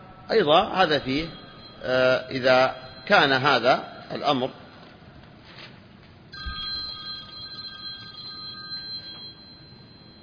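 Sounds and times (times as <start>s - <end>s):
low noise: 0.0s - 10.2s
speech: 0.3s - 4.6s
telephone ringing: 0.8s - 5.0s, 6.4s - 10.2s.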